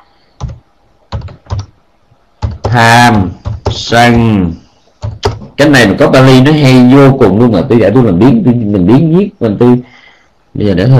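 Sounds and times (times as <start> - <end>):
typing on a computer keyboard: 0.4 - 1.7, 2.4 - 2.8, 3.4 - 3.8, 5.0 - 5.5
speech: 2.8 - 4.6, 5.6 - 9.9, 10.6 - 10.9.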